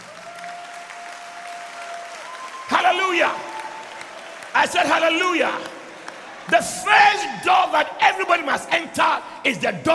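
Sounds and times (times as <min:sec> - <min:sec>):
crowd clapping: 0:00.0 - 0:07.7
speech: 0:03.1 - 0:03.5, 0:04.6 - 0:05.7, 0:06.5 - 0:09.9.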